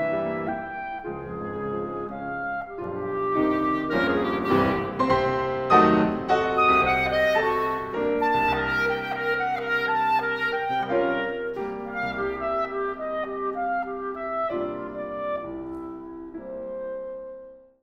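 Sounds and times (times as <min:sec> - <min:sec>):
clarinet playing a sonata: 0:00.0 - 0:17.8
piano: 0:00.0 - 0:17.8.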